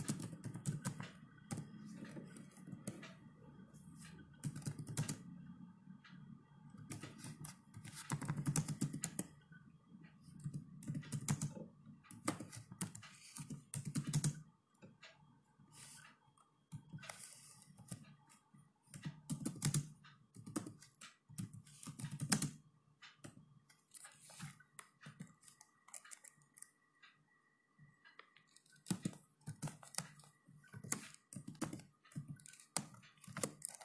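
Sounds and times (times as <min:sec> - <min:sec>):
typing on a keyboard: 0:00.0 - 0:03.2, 0:04.4 - 0:05.2, 0:06.8 - 0:09.3, 0:10.4 - 0:14.4, 0:18.9 - 0:22.6, 0:23.2 - 0:26.7, 0:28.4 - 0:33.8
soft steady faint tone: 0:00.0 - 0:19.1, 0:22.6 - 0:33.8.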